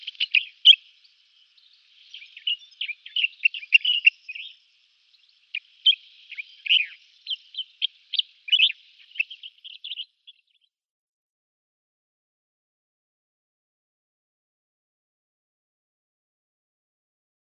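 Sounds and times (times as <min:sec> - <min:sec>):
common bulbul singing: 0:00.0 - 0:10.7.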